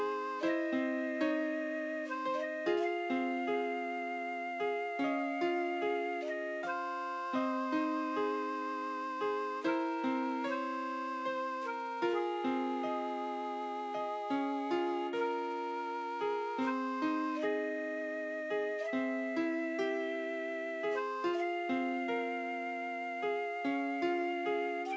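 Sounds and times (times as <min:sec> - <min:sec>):
ska shakuhachi melody: 0:00.0 - 0:24.9.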